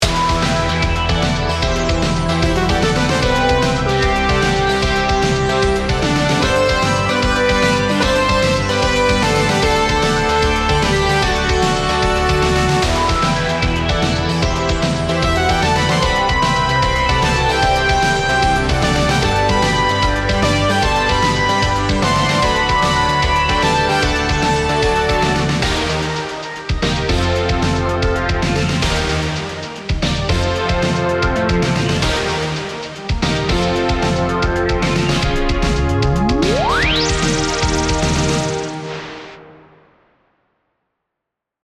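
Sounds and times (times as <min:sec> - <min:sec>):
synthwave music: 0:00.0 - 0:40.1.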